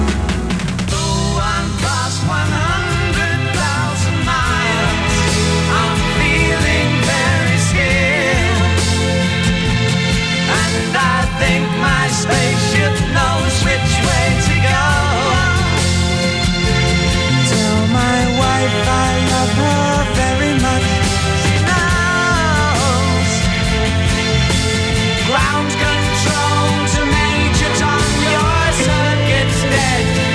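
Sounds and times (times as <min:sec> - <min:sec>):
rock music: 0:00.0 - 0:30.3.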